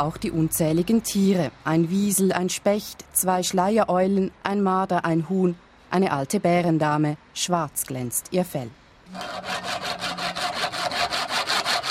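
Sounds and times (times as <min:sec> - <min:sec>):
speech: 0:00.0 - 0:09.8
hand saw cutting through a roe deer skull: 0:09.1 - 0:11.8.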